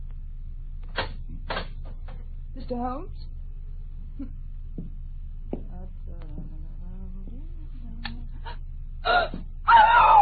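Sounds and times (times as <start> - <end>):
speech: 2.6 - 3.3, 4.2 - 4.4
woman screaming: 9.1 - 10.1.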